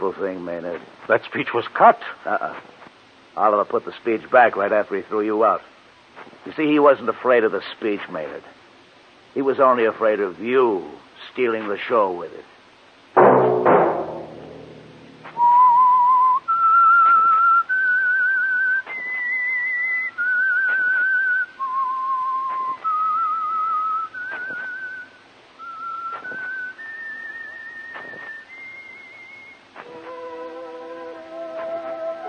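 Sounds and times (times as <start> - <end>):
speech: 0.0 - 2.8, 3.4 - 8.6, 9.3 - 12.5
whistle signal for a radio program: 15.4 - 32.2.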